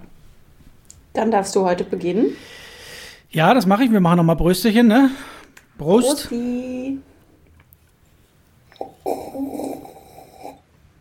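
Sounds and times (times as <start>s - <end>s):
speech: 1.2s - 2.6s, 3.3s - 7.1s
person slurping a drink: 8.7s - 10.6s.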